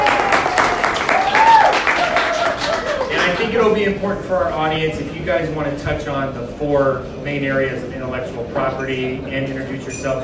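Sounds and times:
audience applause: 0:00.0 - 0:03.5
speech: 0:03.6 - 0:10.2.

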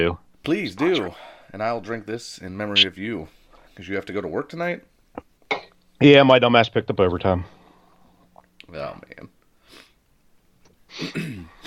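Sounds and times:
speech: 0:00.0 - 0:07.6, 0:08.7 - 0:09.4, 0:11.0 - 0:11.6
person sniffling: 0:10.9 - 0:11.6.

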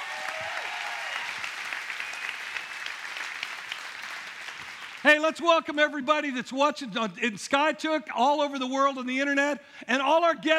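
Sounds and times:
applause from a church congregation: 0:00.0 - 0:05.4
speech: 0:05.0 - 0:10.5.

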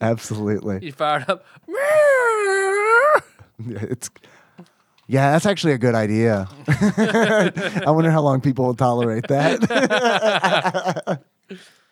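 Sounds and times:
speech: 0:00.0 - 0:11.8
person imitating whale song: 0:01.7 - 0:03.3
person laughing: 0:06.6 - 0:08.1, 0:09.0 - 0:11.2.

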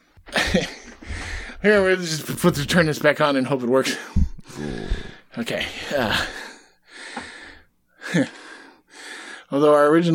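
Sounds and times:
heavy breathing out of breath after running between rooms: 0:00.4 - 0:01.8, 0:03.9 - 0:09.5
speech: 0:00.5 - 0:00.8, 0:01.6 - 0:06.4, 0:08.1 - 0:08.4, 0:09.5 - 0:10.1.

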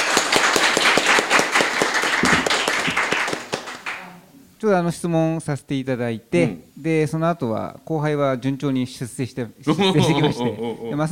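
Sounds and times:
audience applause: 0:00.0 - 0:04.0
speech: 0:04.6 - 0:11.1
laughter: 0:09.7 - 0:11.1.

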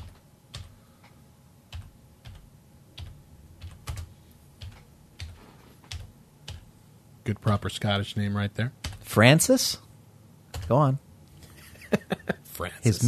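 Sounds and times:
typing a name on a computer keyboard: 0:00.0 - 0:06.7, 0:08.8 - 0:09.0, 0:10.5 - 0:10.8
speech: 0:07.3 - 0:09.8, 0:10.7 - 0:11.0, 0:11.9 - 0:13.0.

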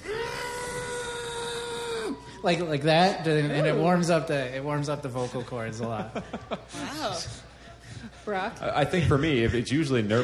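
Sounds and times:
loud scream into cupped hands: 0:00.0 - 0:02.4
speech: 0:02.4 - 0:10.2
laughter: 0:05.0 - 0:10.2.

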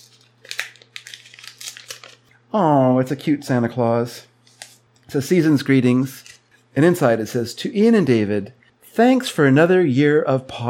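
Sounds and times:
paper torn away from a wrapped parcel box: 0:00.0 - 0:02.3
speech: 0:02.5 - 0:04.3, 0:05.1 - 0:06.2, 0:06.8 - 0:10.6.

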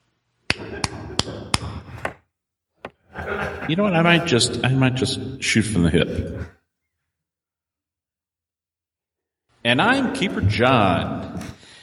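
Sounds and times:
hand clap: 0:00.5 - 0:01.8
laughter: 0:00.5 - 0:02.0, 0:02.9 - 0:06.5
speech: 0:03.7 - 0:06.6, 0:09.7 - 0:11.6.

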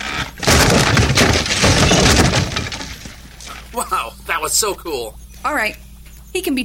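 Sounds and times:
chair breaking apart: 0:00.0 - 0:03.7
speech: 0:03.8 - 0:06.6.

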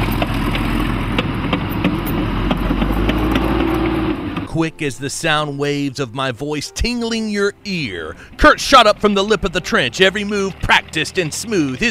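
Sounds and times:
approaching tanks sound effect: 0:00.0 - 0:05.6, 0:07.2 - 0:11.8
speech: 0:04.6 - 0:11.8.

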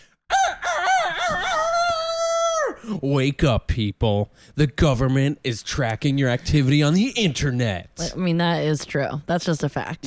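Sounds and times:
rooster crowing: 0:00.3 - 0:02.8
speech: 0:02.9 - 0:10.0.

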